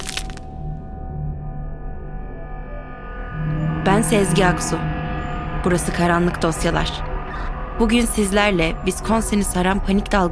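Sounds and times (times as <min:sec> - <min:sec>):
bones breaking: 0:00.0 - 0:00.5
speech: 0:03.4 - 0:04.9, 0:05.6 - 0:10.3.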